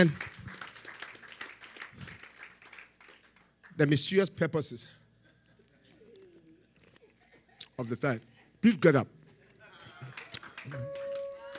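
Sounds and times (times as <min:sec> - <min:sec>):
speech: 0:00.0 - 0:00.2, 0:03.8 - 0:05.0, 0:07.8 - 0:09.2, 0:10.6 - 0:11.0
faint clapping from a church congregation during a sermon: 0:00.0 - 0:04.0, 0:09.9 - 0:11.5.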